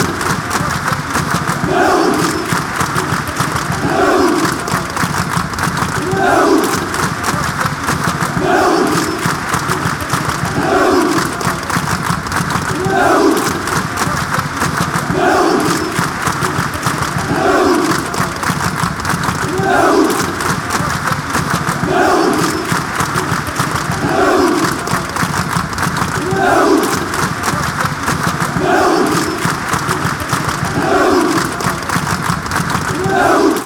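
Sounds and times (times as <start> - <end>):
football crowd songs and soccer chants: 0.0 - 33.6.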